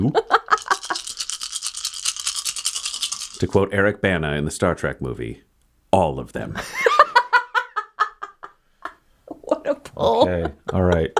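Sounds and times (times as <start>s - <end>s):
speech: 0.0s - 0.2s, 3.4s - 6.9s
several dice rolling and clattering: 0.5s - 3.5s
laughter: 6.6s - 8.6s, 9.4s - 11.1s.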